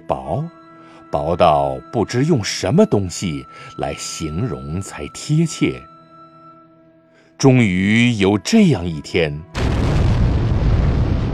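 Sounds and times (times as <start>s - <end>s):
speech: 0.1s - 5.9s, 7.4s - 9.7s
deafening explosion: 9.6s - 11.3s.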